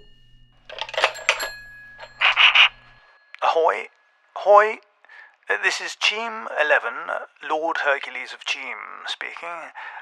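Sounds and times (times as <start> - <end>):
old-fashioned telephone bell ringing: 0.0 - 3.4
speech: 3.8 - 4.9, 5.5 - 9.9.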